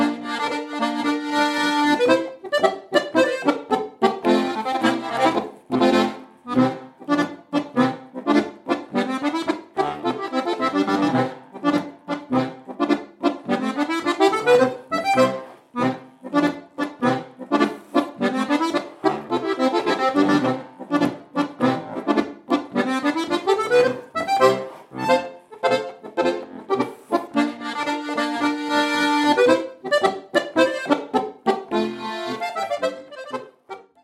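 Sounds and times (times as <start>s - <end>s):
accordion: 0.0s - 34.0s
polka folk music: 0.0s - 34.0s.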